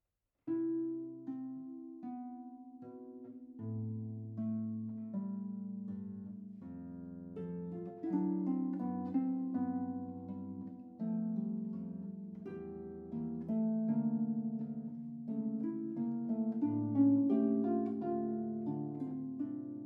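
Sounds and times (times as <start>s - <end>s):
harp playing: 0.5s - 19.8s.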